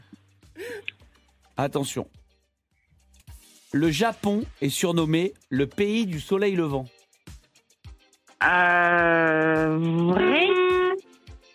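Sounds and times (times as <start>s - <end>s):
speech: 1.6s - 2.2s, 3.7s - 7.0s, 8.4s - 10.6s
horn honking: 10.1s - 11.0s.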